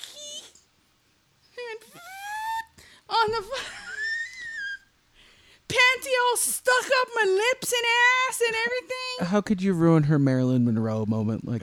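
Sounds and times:
voice imitating skin squeaking on floor: 0:00.0 - 0:00.7, 0:01.7 - 0:02.7
speech: 0:03.3 - 0:03.7, 0:06.3 - 0:11.6.

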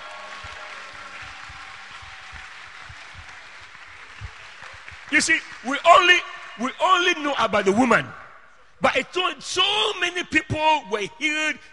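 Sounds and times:
audience clapping hands: 0:00.0 - 0:06.6
speech: 0:05.1 - 0:08.2, 0:08.8 - 0:11.7.

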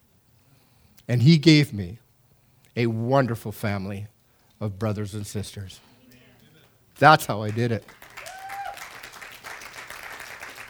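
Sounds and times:
speech: 0:01.1 - 0:02.0, 0:02.8 - 0:05.9, 0:07.0 - 0:08.0
audience applause: 0:07.5 - 0:10.6.

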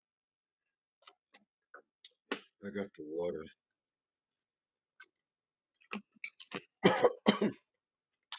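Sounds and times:
speech: 0:02.6 - 0:03.6
person coughing after choking on water: 0:06.8 - 0:07.7.

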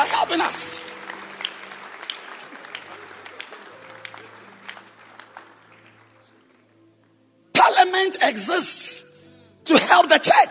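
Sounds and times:
audience clapping hands: 0:00.0 - 0:06.7
speech: 0:00.2 - 0:00.9, 0:08.0 - 0:09.0, 0:09.7 - 0:10.4.

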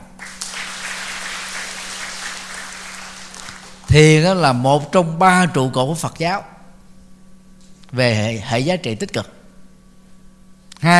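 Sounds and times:
audience applause: 0:00.2 - 0:04.0
speech: 0:03.9 - 0:06.5, 0:07.9 - 0:09.4, 0:10.8 - 0:10.9.

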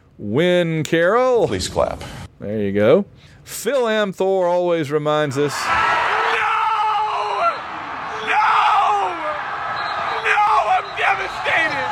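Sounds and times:
speech: 0:00.2 - 0:06.0
small group of people cheering and yelling in celebration: 0:05.5 - 0:11.9.

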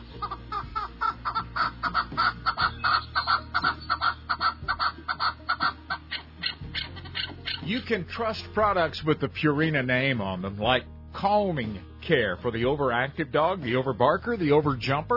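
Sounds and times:
chukar partridge giving clucking chuck calls: 0:00.0 - 0:07.9
speech: 0:07.7 - 0:15.1.

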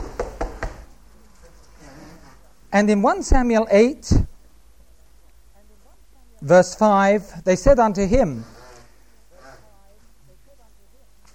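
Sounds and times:
feet stamping on a floor: 0:00.0 - 0:00.9
quiet room noise: 0:00.0 - 0:11.3
speech: 0:02.7 - 0:04.3, 0:06.4 - 0:08.5.

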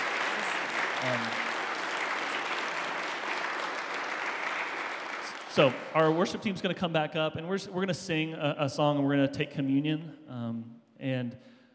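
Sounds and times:
audience applause: 0:00.0 - 0:06.5
speech: 0:01.0 - 0:01.4, 0:05.6 - 0:11.5.

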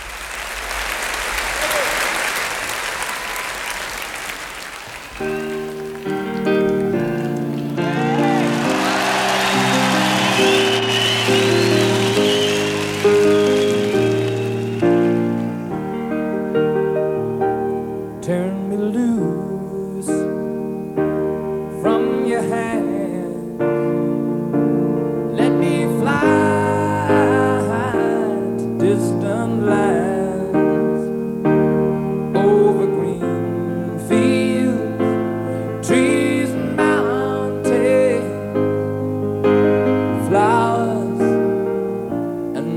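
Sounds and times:
live concert audience applause at the Hammersmith Odeon, London: 0:00.0 - 0:15.9
piano playing: 0:02.8 - 0:42.7.

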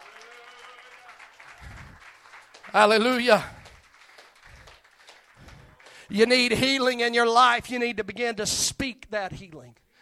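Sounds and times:
church congregation clapping hands: 0:00.0 - 0:07.6
speech: 0:02.7 - 0:03.6, 0:06.1 - 0:09.8.

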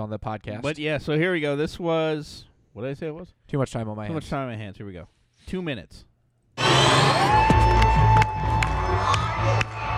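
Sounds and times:
speech: 0:00.0 - 0:08.1
loud concert crowd cheering and clapping: 0:06.6 - 0:09.9.

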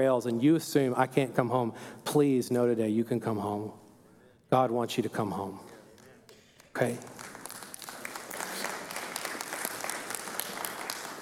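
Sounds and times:
speech: 0:00.0 - 0:03.8, 0:04.5 - 0:05.7, 0:06.8 - 0:07.2
weak audience clapping: 0:05.7 - 0:11.2.

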